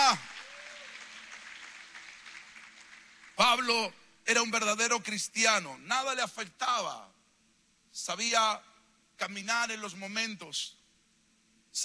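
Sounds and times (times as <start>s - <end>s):
audience applause: 0.0s - 3.4s
speech: 3.5s - 7.2s, 8.0s - 10.8s.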